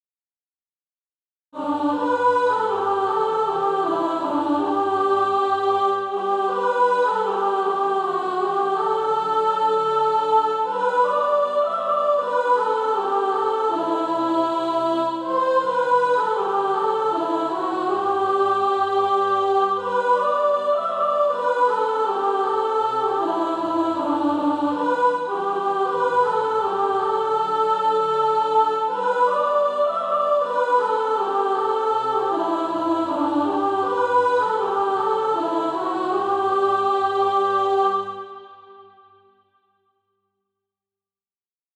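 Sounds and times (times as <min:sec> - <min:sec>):
soprano singing: 0:01.6 - 0:38.9.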